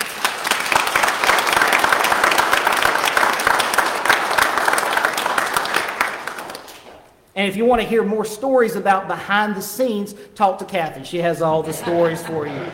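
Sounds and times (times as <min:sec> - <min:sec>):
audience applause: 0:00.0 - 0:07.1
speech: 0:07.4 - 0:12.7
laughter: 0:11.4 - 0:12.7.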